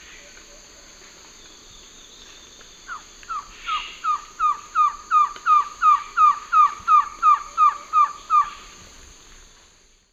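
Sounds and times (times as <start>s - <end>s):
Trogon viridis song in Eastern Lowlands of South America: 1.3s - 8.7s.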